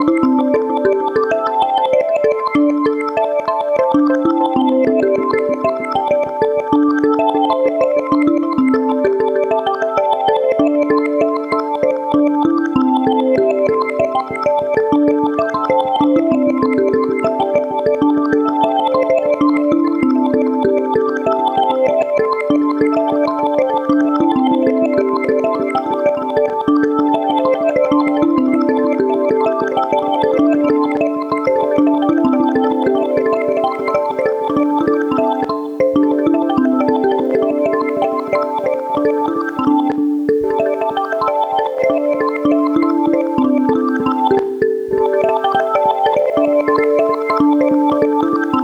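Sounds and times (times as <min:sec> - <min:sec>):
marimbas: 0:00.0 - 0:48.6.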